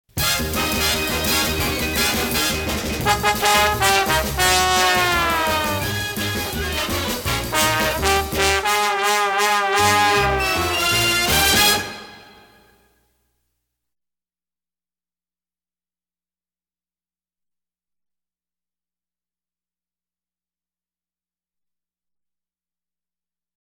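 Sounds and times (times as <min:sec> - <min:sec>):
horns: 0:00.2 - 0:12.8.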